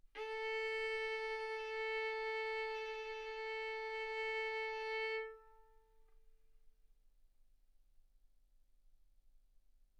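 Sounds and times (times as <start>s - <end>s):
violin arco on A string: 0.2s - 6.0s.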